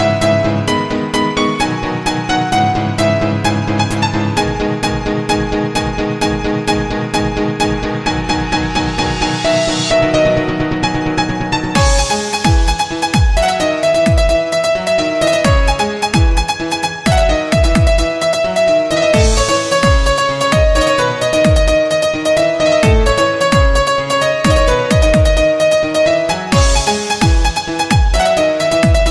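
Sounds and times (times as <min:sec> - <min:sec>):
piano: 0:00.0 - 0:29.0.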